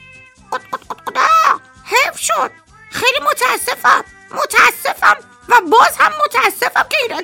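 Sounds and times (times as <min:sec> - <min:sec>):
hen clucking: 0:00.5 - 0:01.6
speech: 0:02.3 - 0:07.2.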